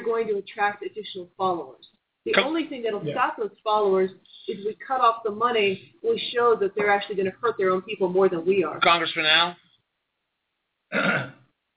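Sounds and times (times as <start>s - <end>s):
speech: 0.1s - 9.6s, 10.9s - 11.4s
person burping after drinking Coke: 10.9s - 11.4s.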